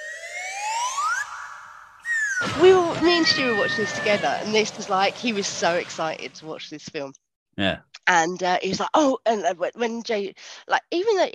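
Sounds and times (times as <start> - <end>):
slide whistle: 0.0 - 2.5
speech: 2.6 - 11.3.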